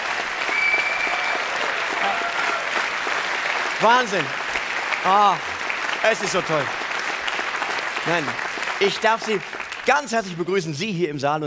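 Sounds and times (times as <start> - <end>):
audience applause in a hall in Mainz at a German cabaret award ceremony: 0.0 - 10.6
thin whistle: 0.5 - 1.2
speech: 3.8 - 4.4, 5.0 - 6.8, 8.0 - 11.4.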